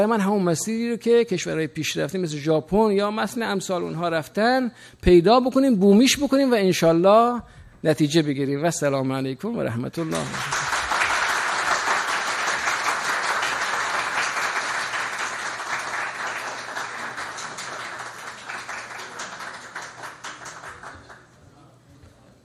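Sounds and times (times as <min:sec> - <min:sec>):
speech: 0:00.0 - 0:10.7
audience applause: 0:10.1 - 0:21.4.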